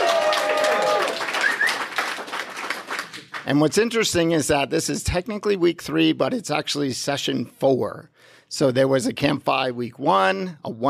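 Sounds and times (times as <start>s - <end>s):
live audience at Camp FI Rocky Mountain Week 3 clapping and whooping: 0.0s - 3.5s
speech: 3.4s - 10.8s.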